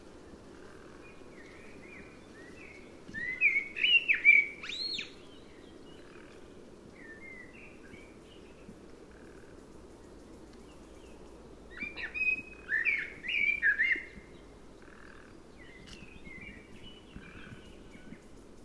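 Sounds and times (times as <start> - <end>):
hiss: 0.0 - 18.6
common blackbird singing: 1.0 - 6.3, 10.9 - 18.2.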